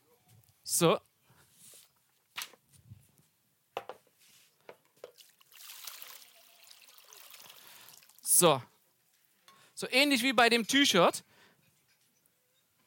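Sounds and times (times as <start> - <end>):
speech: 0.7 - 1.1, 8.4 - 8.7, 9.8 - 11.3
water trickling and splashing as someone washes an arm: 5.1 - 8.4.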